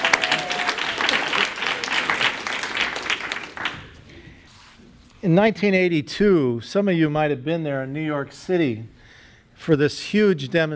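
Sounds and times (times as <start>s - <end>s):
audience applause after a song at an evening gathering: 0.0s - 4.1s
speech: 5.2s - 9.0s, 9.6s - 10.7s.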